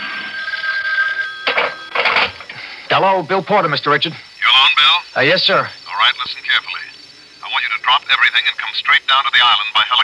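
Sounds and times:
hotline telephone ringing with electronic bell: 0:00.0 - 0:05.3
speech: 0:03.0 - 0:06.8, 0:07.9 - 0:10.0.

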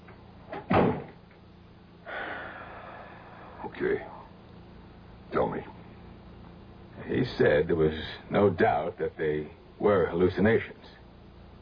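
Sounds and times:
door being shut: 0:00.5 - 0:01.2
speech: 0:03.8 - 0:04.2, 0:05.3 - 0:05.8, 0:07.1 - 0:11.0.

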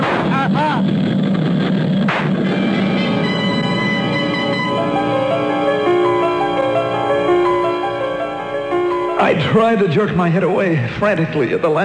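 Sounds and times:
gunshot: 0:00.0 - 0:00.7, 0:01.4 - 0:02.5
airplane engine drone: 0:00.0 - 0:11.8
speech: 0:09.3 - 0:11.8.

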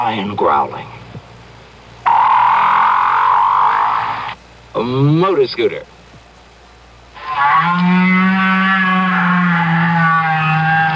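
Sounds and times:
speech: 0:00.0 - 0:01.0, 0:04.7 - 0:05.9
long low whale call: 0:02.1 - 0:04.4, 0:07.2 - 0:10.9.

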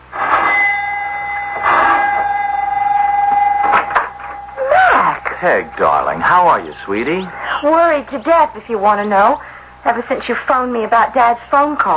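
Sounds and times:
doorbell ringing: 0:00.3 - 0:08.0
speech: 0:05.4 - 0:11.9.

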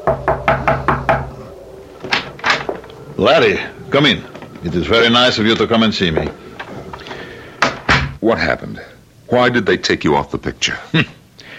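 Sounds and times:
knocking on a door: 0:00.0 - 0:01.3
speech: 0:03.2 - 0:06.4, 0:08.2 - 0:11.2.

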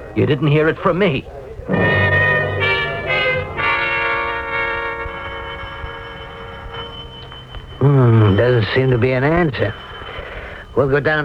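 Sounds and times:
speech: 0:00.2 - 0:02.0, 0:07.8 - 0:09.9, 0:10.8 - 0:11.2
doorbell ringing: 0:01.7 - 0:11.2.

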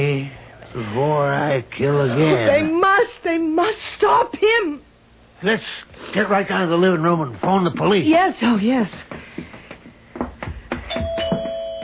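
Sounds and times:
speech: 0:00.7 - 0:09.3
soft rhythmic thumps: 0:08.8 - 0:11.8
doorbell ringing at front door: 0:10.9 - 0:11.8.

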